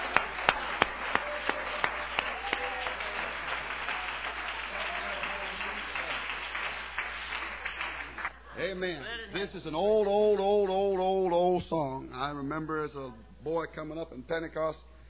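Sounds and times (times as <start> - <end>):
audience clapping hands: 0.0 - 8.4
speech: 8.6 - 14.9.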